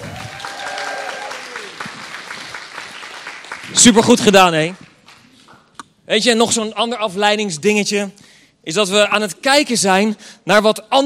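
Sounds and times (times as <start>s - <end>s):
audience applauding: 0.0s - 5.5s
speech: 3.8s - 4.8s, 6.1s - 11.0s.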